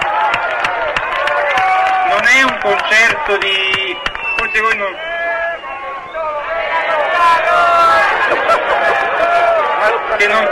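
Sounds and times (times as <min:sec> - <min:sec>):
sharper, evenly spaced claps: 0:00.0 - 0:04.9
crowd applauding: 0:00.0 - 0:10.5
speech: 0:02.4 - 0:05.1, 0:09.9 - 0:10.5
laughter: 0:07.8 - 0:10.1.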